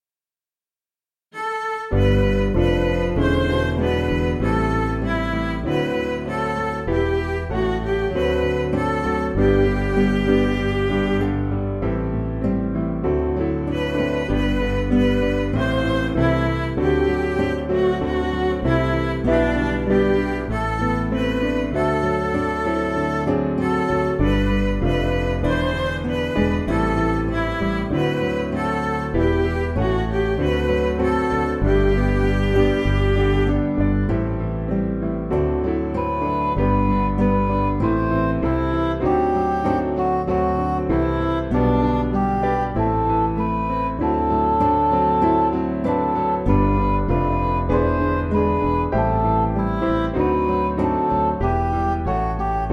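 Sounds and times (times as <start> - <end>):
MIDI music: 1.3 - 52.7.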